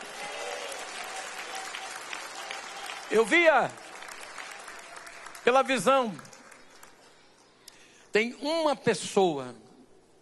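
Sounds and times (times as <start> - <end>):
church congregation clapping in a service: 0.0 - 7.2
speech: 3.1 - 3.8, 5.4 - 6.3, 8.1 - 9.6.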